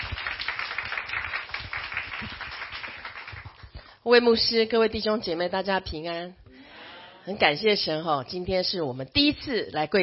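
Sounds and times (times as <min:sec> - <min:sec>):
audience clapping hands in welcome: 0:00.0 - 0:03.9
speech: 0:04.1 - 0:06.4, 0:07.2 - 0:10.0.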